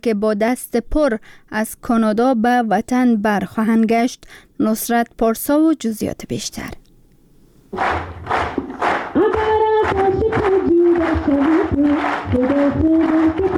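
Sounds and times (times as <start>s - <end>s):
speech: 0.0s - 6.8s, 7.7s - 8.5s, 9.9s - 13.5s
rhythmic group clapping: 7.7s - 13.5s.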